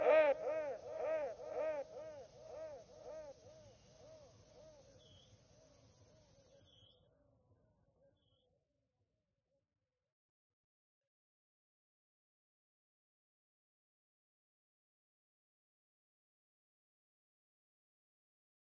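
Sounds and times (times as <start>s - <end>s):
crow cawing: 0.0s - 4.8s.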